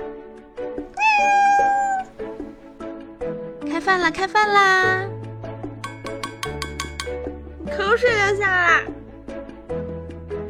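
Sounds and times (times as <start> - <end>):
cat meowing: 0.9 - 2.3
speech: 3.8 - 5.1, 7.7 - 9.0.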